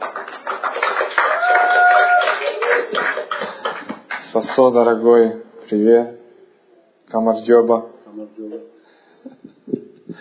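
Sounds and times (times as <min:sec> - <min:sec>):
warm applause: 0:00.0 - 0:04.8
speech: 0:04.6 - 0:06.2, 0:07.1 - 0:08.6.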